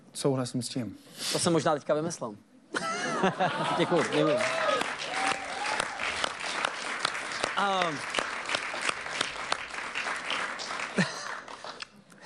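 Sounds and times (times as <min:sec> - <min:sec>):
speech: 0:00.2 - 0:02.5, 0:03.2 - 0:04.6, 0:07.6 - 0:08.2
laughter: 0:02.7 - 0:04.8, 0:10.8 - 0:11.6
slow sparse hand claps: 0:04.7 - 0:12.0.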